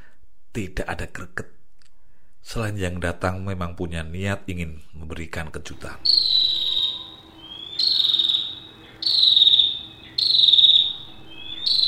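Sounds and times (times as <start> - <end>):
faint steady hum: 0.0 - 11.8
speech: 0.6 - 1.6, 2.4 - 6.7
prinia calling: 5.9 - 11.8.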